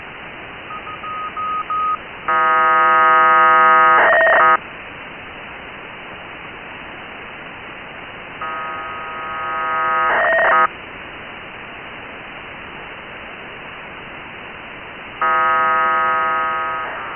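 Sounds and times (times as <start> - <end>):
1k2 BPSK radio data signal on 145880: 0.7 - 4.6, 8.4 - 10.7, 15.2 - 17.1.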